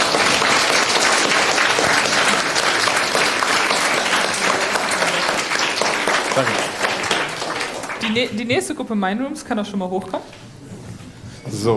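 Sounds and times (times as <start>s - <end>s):
audience applause: 0.0s - 8.8s
speech: 6.4s - 6.6s, 8.0s - 10.4s, 11.5s - 11.7s.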